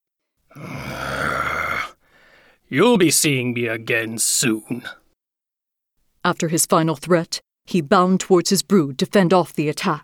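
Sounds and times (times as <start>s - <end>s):
fox growling: 0.5s - 2.0s
speech: 2.7s - 5.0s, 6.2s - 10.0s.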